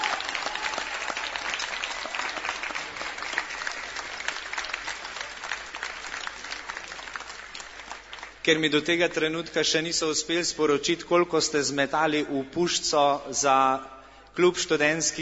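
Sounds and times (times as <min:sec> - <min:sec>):
audience applause: 0:00.0 - 0:08.5
speech: 0:08.5 - 0:15.2.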